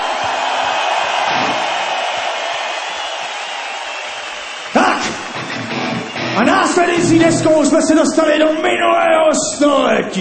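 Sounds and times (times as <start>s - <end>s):
audience applause: 0.0s - 7.0s
speech: 6.4s - 10.1s.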